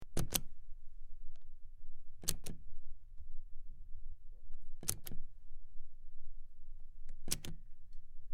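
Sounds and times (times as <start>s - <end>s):
button pressed in and out, switch clicks: 0.1s - 0.5s, 2.2s - 2.6s, 7.1s - 7.6s.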